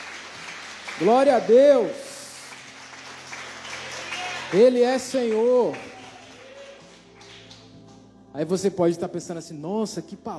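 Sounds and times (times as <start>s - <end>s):
crowd applauding: 0.0s - 7.8s
speech: 1.0s - 2.0s, 4.5s - 5.9s, 8.4s - 10.3s.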